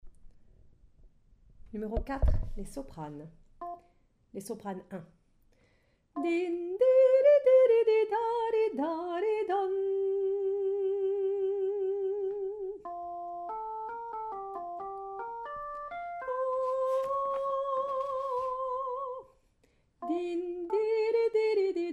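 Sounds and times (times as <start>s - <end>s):
soprano singing: 6.2s - 19.4s, 20.0s - 21.9s.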